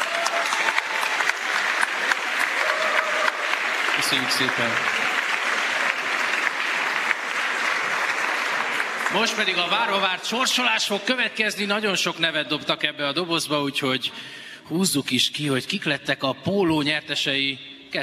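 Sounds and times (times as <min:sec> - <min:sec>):
audience applause: 0:00.0 - 0:10.8
speech: 0:04.0 - 0:05.1, 0:09.1 - 0:18.0.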